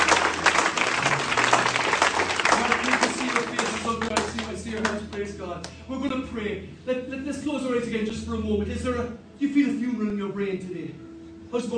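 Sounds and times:
audience applause: 0:00.0 - 0:05.3
speech: 0:05.2 - 0:11.7.

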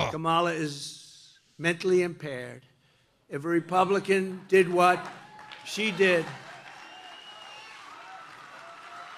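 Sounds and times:
speech: 0:00.2 - 0:01.0, 0:01.6 - 0:02.7, 0:03.3 - 0:06.4
crowd applause: 0:04.5 - 0:09.1
whistles: 0:06.5 - 0:09.1.

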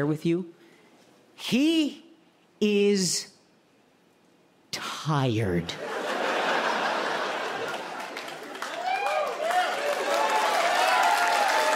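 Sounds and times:
speech: 0:00.0 - 0:00.6, 0:01.4 - 0:02.0, 0:02.6 - 0:03.3, 0:04.7 - 0:05.9
audience laughter: 0:05.8 - 0:08.6
audience clapping: 0:06.8 - 0:11.7
cheers and whoops: 0:08.6 - 0:11.7.

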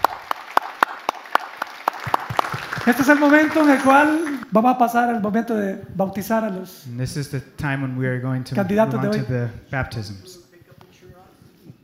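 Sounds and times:
church congregation clapping in unison: 0:00.0 - 0:04.5
speech: 0:02.9 - 0:10.4.

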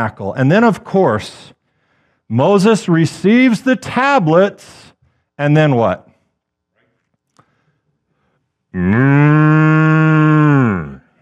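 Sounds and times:
speech: 0:00.0 - 0:01.6, 0:02.3 - 0:04.8, 0:05.4 - 0:06.1, 0:08.7 - 0:09.7
cow mooing sound effect for the golden calf: 0:08.8 - 0:11.0.

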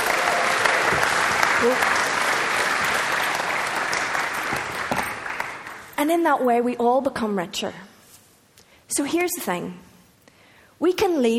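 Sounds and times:
audience cheering: 0:00.0 - 0:05.7
speech: 0:01.6 - 0:02.0, 0:06.0 - 0:07.9, 0:08.9 - 0:09.9, 0:10.8 - 0:11.3.

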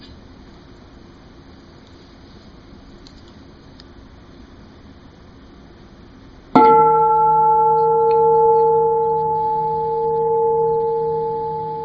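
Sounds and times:
bell ringing: 0:06.6 - 0:11.8.

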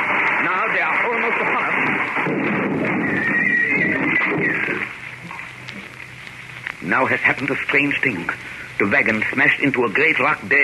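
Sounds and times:
loud steady rushing noise: 0:00.0 - 0:10.4
horse whinnying: 0:03.1 - 0:04.7
speech: 0:06.8 - 0:10.6.

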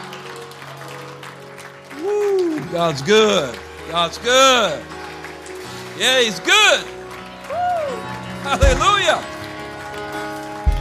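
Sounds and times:
audience hand clap of praise: 0:00.0 - 0:10.7
speech: 0:02.7 - 0:04.9, 0:06.0 - 0:07.0, 0:08.4 - 0:09.3.

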